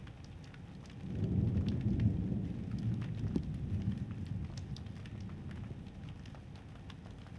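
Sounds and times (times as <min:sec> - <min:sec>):
thunder: 0:01.0 - 0:06.3.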